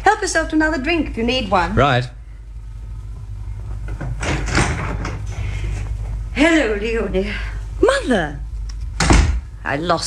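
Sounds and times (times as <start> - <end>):
steady low hum: 0.0 - 10.0
speech: 0.1 - 2.2, 6.4 - 8.4, 9.6 - 10.0
front door being opened: 3.8 - 6.0.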